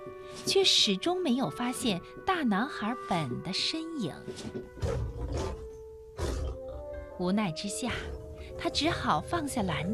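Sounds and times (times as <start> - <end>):
speech: 0.1 - 5.5, 7.2 - 9.9
lion roaring: 4.8 - 7.0.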